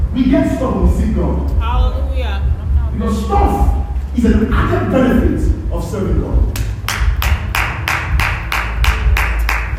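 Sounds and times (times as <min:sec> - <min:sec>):
speech: 0:00.2 - 0:02.3, 0:03.0 - 0:06.6
audience clapping: 0:06.5 - 0:09.7.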